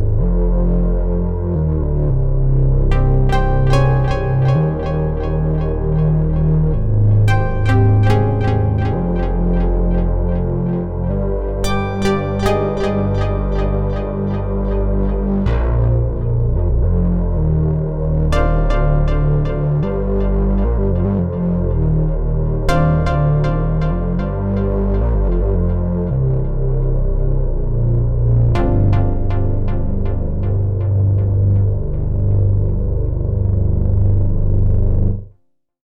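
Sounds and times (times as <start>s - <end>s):
overdriven bass: 0.0s - 35.3s.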